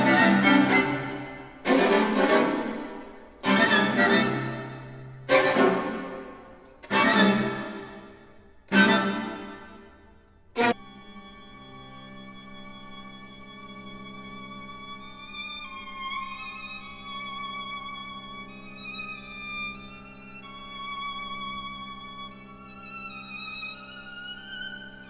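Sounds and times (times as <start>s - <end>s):
moderate elegant waltz music: 0.0s - 8.0s.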